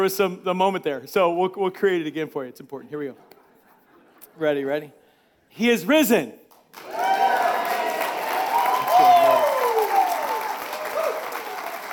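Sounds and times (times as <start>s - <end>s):
speech: 0.0s - 3.4s, 4.4s - 7.0s
Easter Sunday church congregation clapping: 6.5s - 11.9s.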